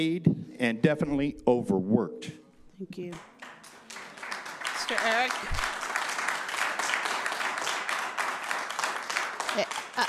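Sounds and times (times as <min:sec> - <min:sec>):
speech: 0:00.0 - 0:03.3, 0:04.9 - 0:05.7, 0:09.6 - 0:10.0
audience clapping: 0:03.1 - 0:10.0.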